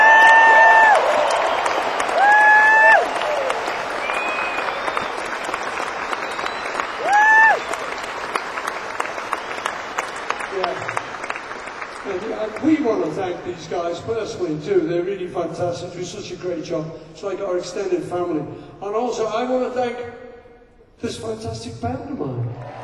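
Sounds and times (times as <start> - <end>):
concert audience clapping and cheering: 0.0 - 13.8, 22.6 - 22.8
piercing whistles from concert crowd: 4.0 - 8.0
speech: 14.1 - 20.2, 21.0 - 22.6.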